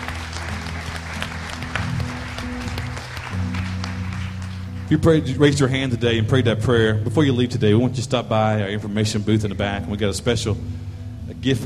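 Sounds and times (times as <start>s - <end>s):
audience applause: 0.0s - 5.0s
speech: 4.9s - 10.8s, 11.4s - 11.6s.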